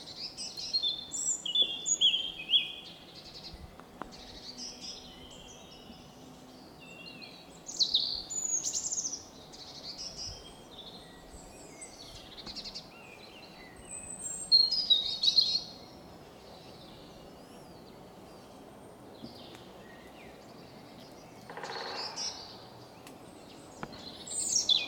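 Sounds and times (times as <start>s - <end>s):
forest birds singing: 0.0s - 24.8s
woodpecker pecking: 21.4s - 22.2s.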